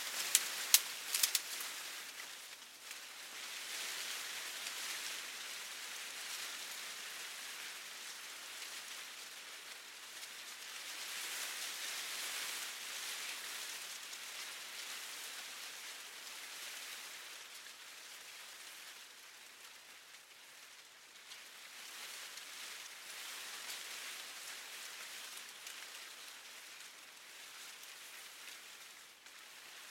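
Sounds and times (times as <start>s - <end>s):
medium leaves snapping: 0.0s - 2.3s
medium leaves moved by wind rustling: 0.0s - 29.8s.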